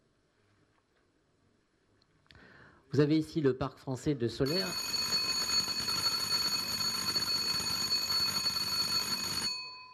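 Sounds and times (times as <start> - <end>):
speech: 2.9 - 5.0
alarm ringing: 4.4 - 9.9.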